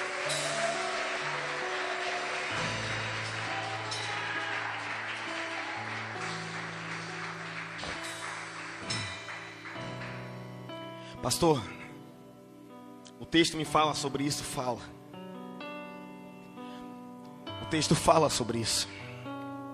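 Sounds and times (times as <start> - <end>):
crowd clapping: 0.0 - 10.7
sustained low keyboard chords: 0.0 - 19.7
speech: 11.2 - 11.8, 13.3 - 15.0, 17.7 - 19.0.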